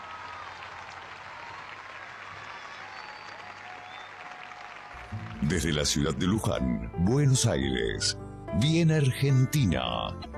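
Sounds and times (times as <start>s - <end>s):
audience applause at a live Argentine folk music performance: 0.0s - 6.4s
speech: 5.1s - 10.3s.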